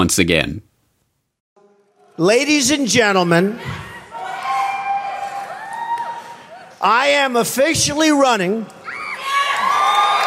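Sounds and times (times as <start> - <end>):
speech: 0.0 - 0.7, 2.2 - 3.8, 6.8 - 8.8
crowd cheering at a campaign announcement of a run for US President: 1.6 - 6.9, 8.7 - 10.2.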